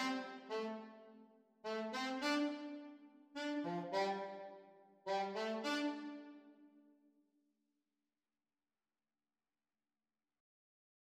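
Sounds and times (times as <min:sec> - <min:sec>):
saxophone duet playalong: 0:00.0 - 0:01.0, 0:01.7 - 0:06.5.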